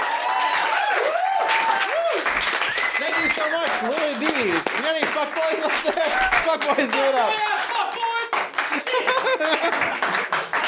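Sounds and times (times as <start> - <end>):
audience cheering and whooping: 0.0 - 4.5, 5.8 - 7.9
scattered clapping: 0.0 - 10.6
speech: 3.8 - 7.6
audience laughter: 8.8 - 10.3.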